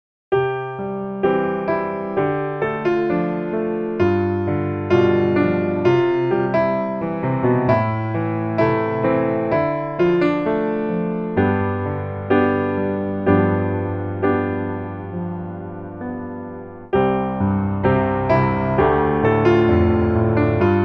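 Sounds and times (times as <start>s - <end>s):
piano: 0.3s - 20.8s.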